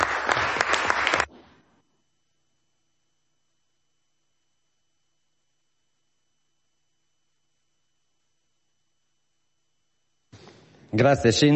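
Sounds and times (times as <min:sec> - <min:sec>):
audience applause: 0:00.0 - 0:01.3
speech: 0:10.9 - 0:11.5.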